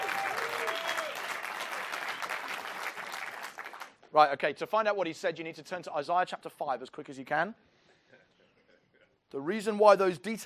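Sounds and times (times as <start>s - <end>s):
ripple of audience applause: 0.0s - 4.0s
speech: 4.1s - 7.7s, 9.3s - 10.4s.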